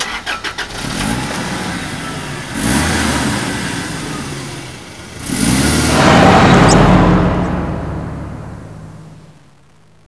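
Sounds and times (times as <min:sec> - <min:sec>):
car engine starting: 0:00.0 - 0:09.5.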